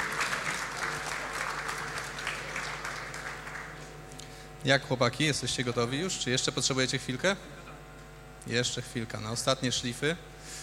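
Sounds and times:
audience applause: 0.0s - 4.0s
speech: 4.6s - 7.6s, 8.5s - 10.6s.

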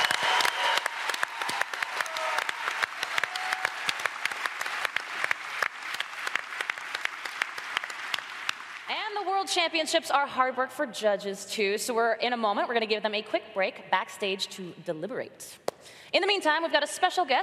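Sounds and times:
audience round of applause: 0.0s - 8.9s
speech: 9.4s - 17.4s.

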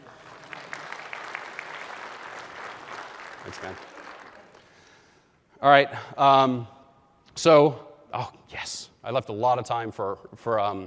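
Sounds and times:
audience applause at a live software demo talk: 0.0s - 4.9s
speech: 3.4s - 4.0s, 5.6s - 6.7s, 7.4s - 10.8s.

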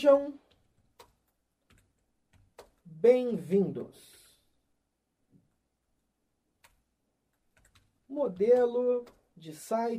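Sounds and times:
speech: 0.0s - 0.4s, 3.0s - 4.2s, 8.1s - 9.9s
faint computer keyboard typing into a website builder: 0.4s - 2.8s, 6.6s - 9.3s.

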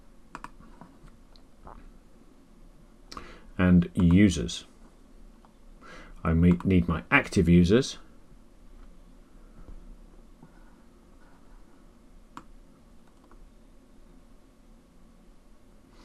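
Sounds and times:
quiet hiss: 0.0s - 16.0s
computer mouse clicks: 0.3s - 1.5s, 12.3s - 13.4s
speech: 3.6s - 4.7s, 6.2s - 8.0s.

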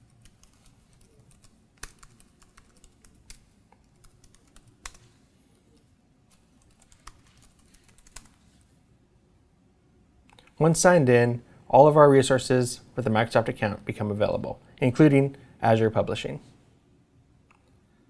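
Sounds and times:
typing on a computer keyboard: 0.0s - 5.1s, 6.3s - 8.4s
speech: 10.6s - 16.5s.

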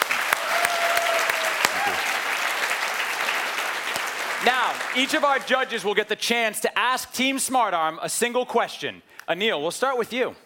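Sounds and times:
audience applause: 0.0s - 5.8s
speech: 5.0s - 10.4s.

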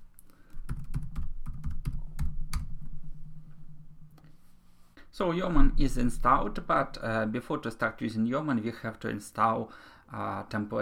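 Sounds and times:
computer keyboard typing as a terminal command is entered: 0.6s - 2.3s
speech: 5.2s - 10.8s.

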